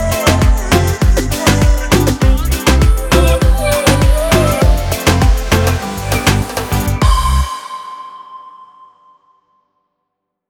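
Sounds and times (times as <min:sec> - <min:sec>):
accordion reggaeton music: 0:00.0 - 0:08.0.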